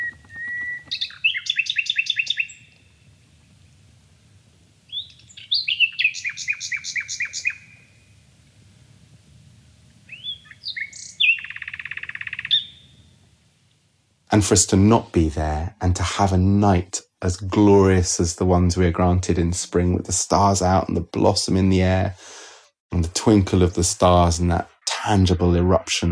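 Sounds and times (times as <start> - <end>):
nightingale singing: 0.0 - 3.1, 4.9 - 8.0, 10.1 - 13.2
speech: 14.4 - 22.3, 23.0 - 26.1.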